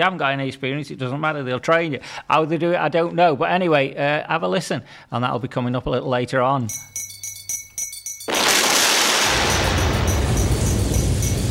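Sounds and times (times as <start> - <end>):
speech: 0.0 - 7.1
thunder crack at start of song: 8.3 - 11.5
music: 9.7 - 11.5.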